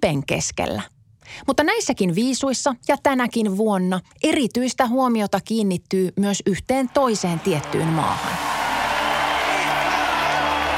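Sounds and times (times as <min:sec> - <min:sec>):
speech: 0:00.0 - 0:08.5
applause: 0:06.9 - 0:10.7
crowd booing: 0:06.9 - 0:10.7.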